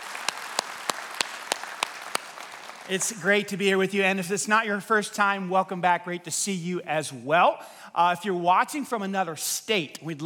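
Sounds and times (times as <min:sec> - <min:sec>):
audience applauding first-time guests: 0:00.0 - 0:03.3
speech: 0:02.9 - 0:10.2.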